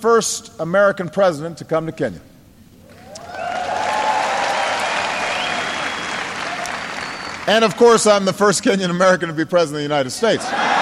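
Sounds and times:
speech: 0:00.0 - 0:02.3, 0:07.5 - 0:10.8
crowd applauding: 0:02.9 - 0:08.2
whistles: 0:03.0 - 0:07.5.

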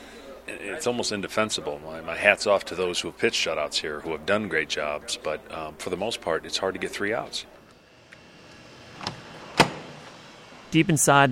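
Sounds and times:
speech: 0:00.5 - 0:07.6, 0:10.7 - 0:11.3
door of the Rockies stadium humidor opening: 0:07.6 - 0:10.6.

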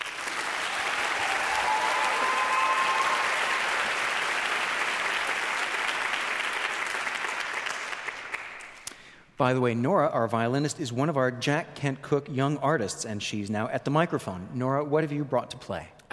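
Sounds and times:
audience applause welcoming a young music trio: 0:00.0 - 0:08.8
speech: 0:09.4 - 0:16.0.

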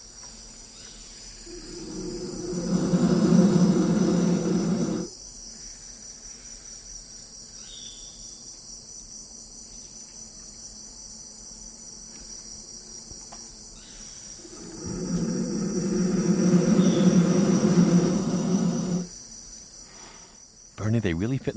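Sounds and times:
steady high insect drone: 0:00.0 - 0:21.5
baby vultures roaring in nest hollow: 0:01.5 - 0:05.1, 0:14.4 - 0:19.1
speech: 0:21.0 - 0:21.5.

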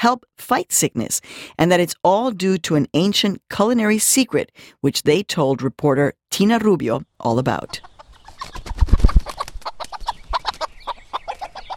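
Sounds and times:
speech: 0:00.0 - 0:08.6
hens clucking in a wild garden in Oakland: 0:07.5 - 0:11.7.

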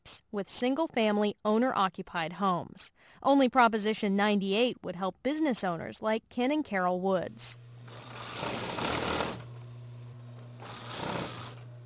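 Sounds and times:
speech: 0:00.3 - 0:07.6
steady electrical hum: 0:07.2 - 0:11.8
sewing machine whirring in an embroidery and sewing machine repair shop: 0:07.6 - 0:11.8.

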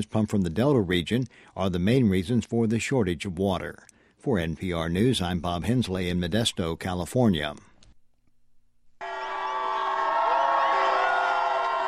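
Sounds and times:
speech: 0:00.0 - 0:07.7
crowd cheering at a street march for gay rights: 0:09.0 - 0:11.8.

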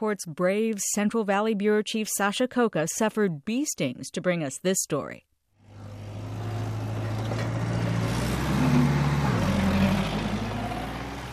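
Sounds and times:
speech: 0:00.0 - 0:05.3
big rig truck diesel engine backing up slowly: 0:05.6 - 0:11.3.

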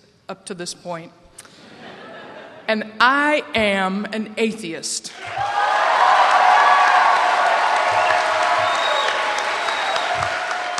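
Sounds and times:
speech: 0:00.3 - 0:01.2, 0:02.7 - 0:05.6
laughter: 0:01.6 - 0:02.7
audience hooting and clapping: 0:05.2 - 0:10.7.

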